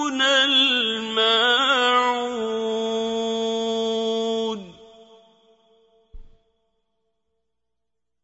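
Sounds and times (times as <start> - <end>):
qari reciting the Quran: 0.0 - 6.4.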